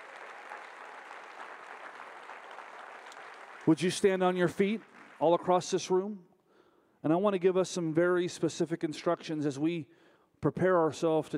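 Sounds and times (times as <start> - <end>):
audience applause: 0.0 - 5.8
speech: 3.6 - 6.3, 7.0 - 11.3.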